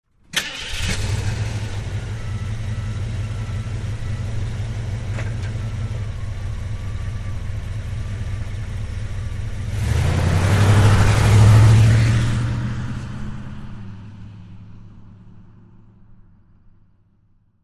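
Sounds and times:
Jeep Wagoneer engine starting and idling: 0:00.1 - 0:16.7.

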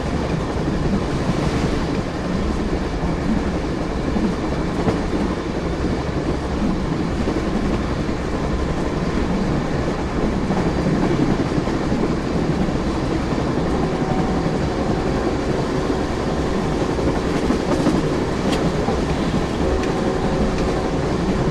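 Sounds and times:
passenger train exterior: 0:00.0 - 0:21.5.

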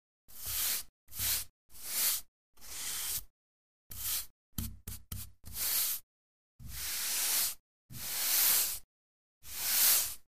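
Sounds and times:
billiards brush: 0:00.3 - 0:03.3, 0:03.9 - 0:06.0, 0:06.6 - 0:08.8, 0:09.4 - 0:10.3.

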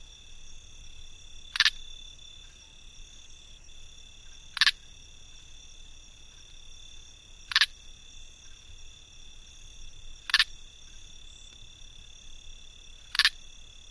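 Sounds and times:
cricket clicking close: 0:01.4 - 0:02.7, 0:04.0 - 0:05.1, 0:07.4 - 0:08.8, 0:10.1 - 0:13.9.

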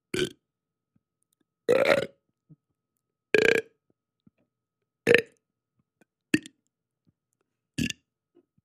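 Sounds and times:
person burping: 0:01.7 - 0:02.2, 0:03.4 - 0:03.7, 0:05.1 - 0:05.4, 0:07.8 - 0:08.0.

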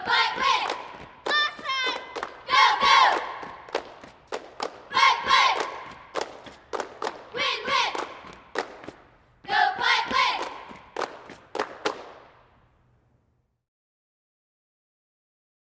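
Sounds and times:
high school cheerleaders chanting a cheer outdoors: 0:00.0 - 0:04.0, 0:04.6 - 0:11.2.

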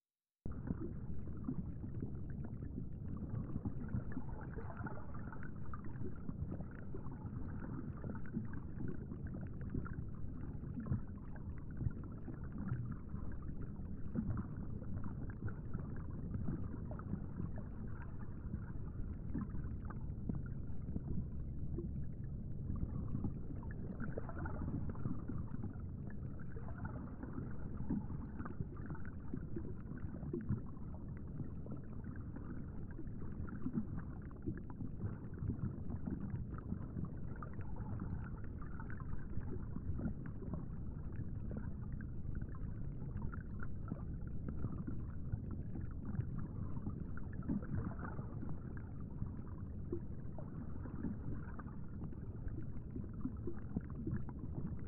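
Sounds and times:
underwater water flow: 0:00.2 - 0:54.8.

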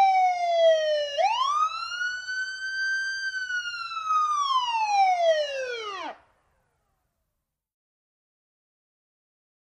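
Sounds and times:
ambulance wailer siren: 0:00.0 - 0:06.2.

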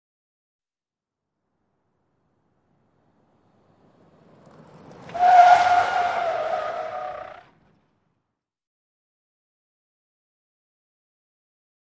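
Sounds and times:
SUV truck skidding in a 180 turn: 0:02.7 - 0:08.1.

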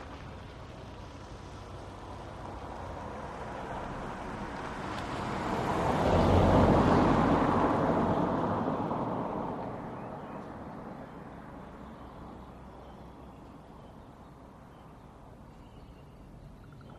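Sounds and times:
light cars passing by on a suburban street: 0:00.0 - 0:16.9
birds on a suburban street: 0:09.7 - 0:16.9.

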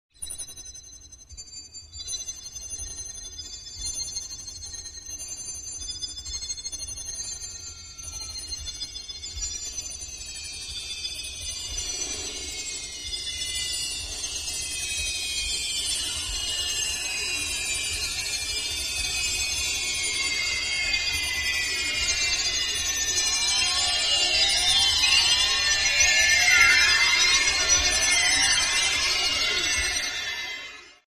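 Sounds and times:
multi-pitched high frequency oscillating tones: 0:00.2 - 0:31.0.

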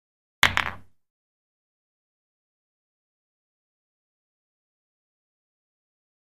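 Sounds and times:
billiard balls clacking: 0:00.4 - 0:00.9.

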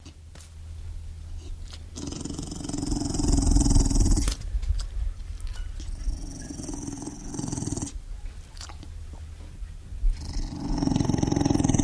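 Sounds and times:
pit bull growling deeply: 0:01.4 - 0:04.4, 0:05.9 - 0:08.0, 0:10.1 - 0:11.8.

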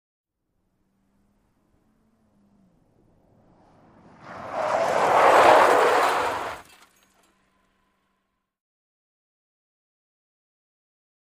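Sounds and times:
small compact car 180 skid: 0:01.3 - 0:07.9.

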